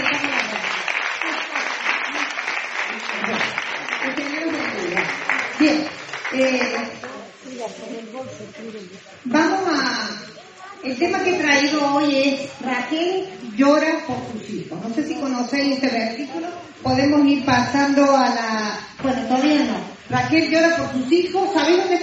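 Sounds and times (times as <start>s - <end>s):
audience applause: 0.0s - 7.3s
speech: 7.7s - 22.0s.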